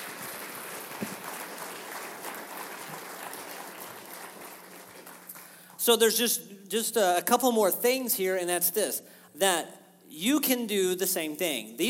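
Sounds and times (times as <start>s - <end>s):
crowd applause: 0.0s - 5.6s
speech: 5.8s - 11.8s.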